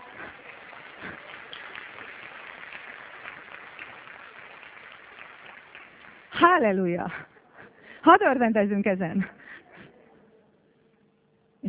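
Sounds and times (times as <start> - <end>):
audience applause: 0.0 - 6.6
speech: 6.4 - 7.3, 8.0 - 9.4.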